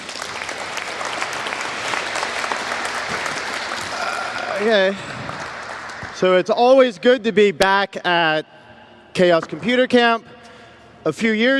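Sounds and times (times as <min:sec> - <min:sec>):
audience applause: 0:00.0 - 0:06.4
speech: 0:04.6 - 0:05.1, 0:06.2 - 0:08.6, 0:09.2 - 0:10.3, 0:11.0 - 0:11.5.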